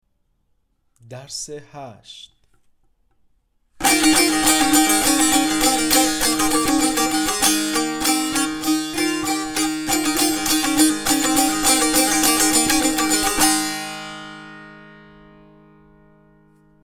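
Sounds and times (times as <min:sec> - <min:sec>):
tanbur practice: 0:03.8 - 0:16.8.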